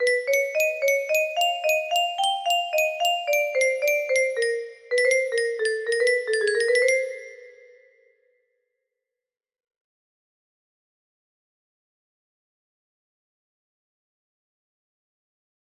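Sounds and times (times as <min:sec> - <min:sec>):
melody: 0:00.0 - 0:07.9.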